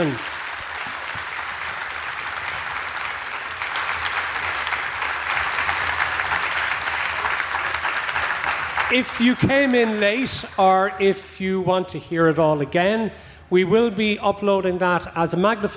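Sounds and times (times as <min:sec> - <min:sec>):
speech: 0:00.0 - 0:00.3, 0:08.9 - 0:15.7
audience applause: 0:00.0 - 0:11.1.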